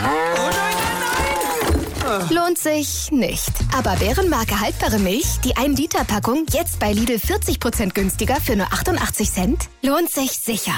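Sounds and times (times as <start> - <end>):
cow mooing: 0.0 - 1.1
speech: 2.1 - 10.7.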